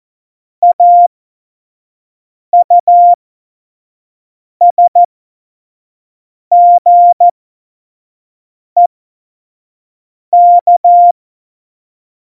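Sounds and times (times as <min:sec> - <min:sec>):
Morse code beeps for a Morse course: 0:00.6 - 0:01.1, 0:02.6 - 0:03.2, 0:04.6 - 0:05.1, 0:06.5 - 0:07.3, 0:10.4 - 0:11.2.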